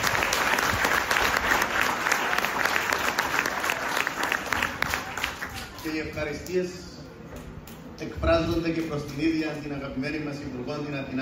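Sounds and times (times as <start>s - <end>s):
audience applause: 0.0s - 6.0s
speech: 6.0s - 6.9s, 8.0s - 11.2s.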